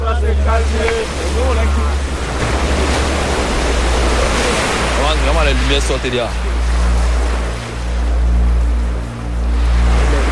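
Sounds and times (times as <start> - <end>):
sea waves: 0.0 - 10.3
speech: 5.4 - 6.6.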